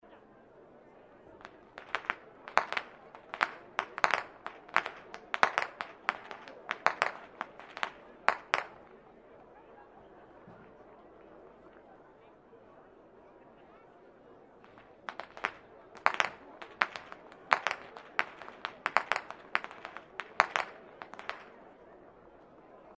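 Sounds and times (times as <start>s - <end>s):
youth whip cracking: 1.4s - 8.8s, 14.7s - 21.5s.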